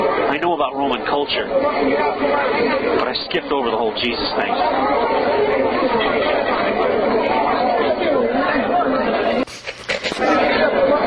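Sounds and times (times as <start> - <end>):
speech: 0.4 - 7.4
crowd of people chattering outdoors: 1.4 - 3.0, 4.3 - 11.0.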